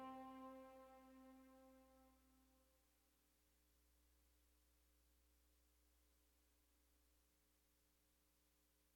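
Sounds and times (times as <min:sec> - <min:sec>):
library interior music: 0:00.0 - 0:01.6.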